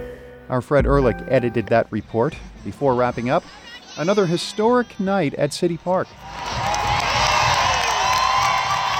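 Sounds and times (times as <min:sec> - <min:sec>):
speech: 0:00.5 - 0:06.7
22,000 fans at the soccer stadium cheering a goal: 0:02.6 - 0:08.9.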